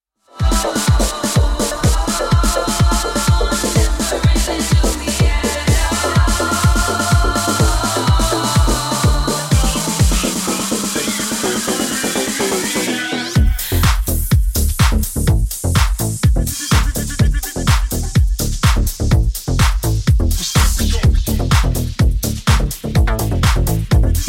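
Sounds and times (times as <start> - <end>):
majestic big beat remix: 0.4 - 24.2.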